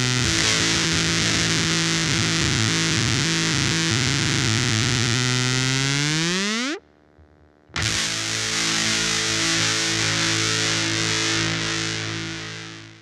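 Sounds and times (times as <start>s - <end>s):
fuzz-distorted guitar chord: 0.0s - 6.8s, 7.7s - 13.0s.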